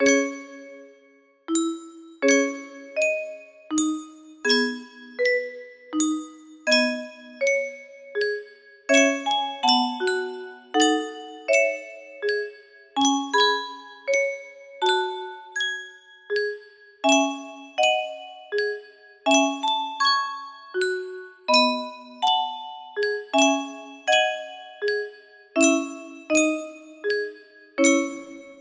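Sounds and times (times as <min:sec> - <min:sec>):
music box: 0:00.0 - 0:28.5.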